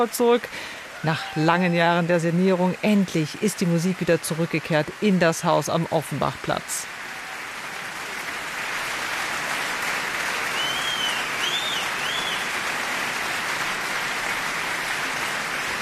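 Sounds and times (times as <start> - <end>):
speech: 0.0 - 7.0
opera audience applause: 0.0 - 15.8
whistles and whoops of cheering: 10.4 - 12.7.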